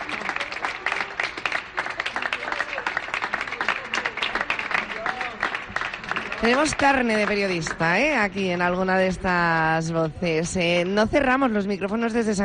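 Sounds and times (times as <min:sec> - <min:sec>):
audience applause: 0:00.0 - 0:08.2
speech: 0:06.4 - 0:12.4.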